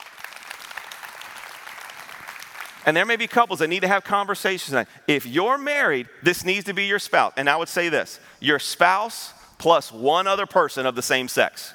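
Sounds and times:
crowd clapping: 0.0s - 3.3s
speech: 2.8s - 11.7s.

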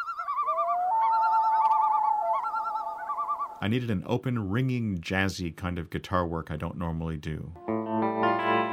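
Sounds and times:
loon calls: 0.0s - 3.7s
speech: 3.6s - 8.6s.

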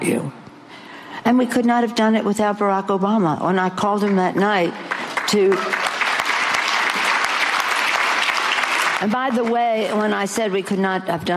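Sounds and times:
speech: 1.3s - 5.8s, 9.0s - 11.3s
audience applause: 4.9s - 9.6s.

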